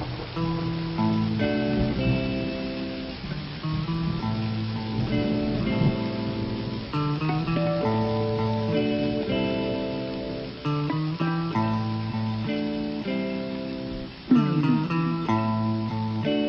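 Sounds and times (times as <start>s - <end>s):
blues music: 0.2s - 16.4s.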